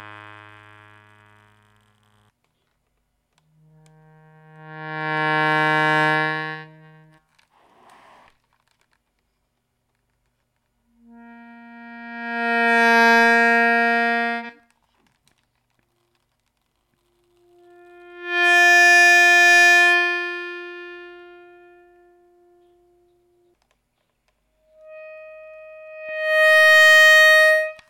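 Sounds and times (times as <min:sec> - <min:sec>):
reed instrument: 0:03.5 - 0:07.2, 0:10.9 - 0:14.7, 0:17.2 - 0:23.6, 0:24.6 - 0:27.8.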